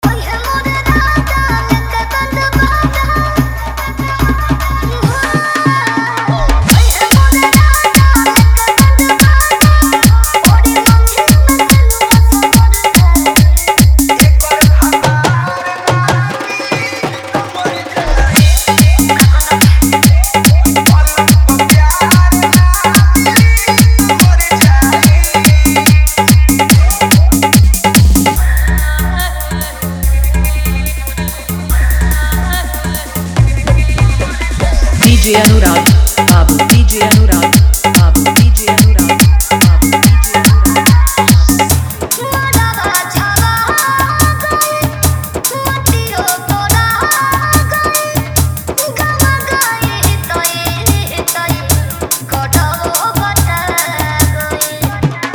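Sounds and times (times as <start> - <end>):
Bhojpuri dholak bass music mix: 0.0 - 55.3.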